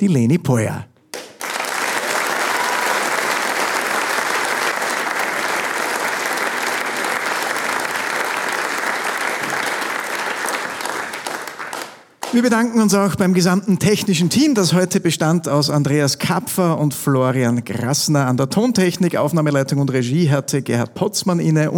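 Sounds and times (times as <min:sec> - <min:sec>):
speech: 0:00.0 - 0:00.9, 0:12.3 - 0:21.7
final audience applause: 0:01.1 - 0:12.4.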